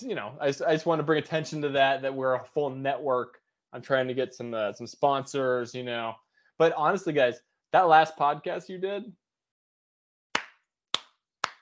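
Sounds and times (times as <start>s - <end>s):
speech: 0.0s - 9.2s
slow hand claps: 10.4s - 11.6s.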